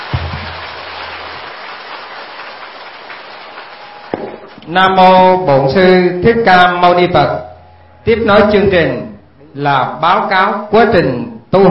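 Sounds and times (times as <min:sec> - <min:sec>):
audience applause: 0:00.0 - 0:04.6
speech: 0:04.7 - 0:11.6.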